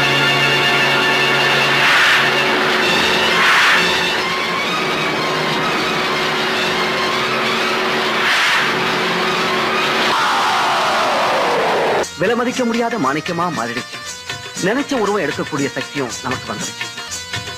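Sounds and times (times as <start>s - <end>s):
car engine roaring and accelerating away: 0.0s - 12.0s
car tires screeching: 0.4s - 12.0s
speech: 12.4s - 16.9s.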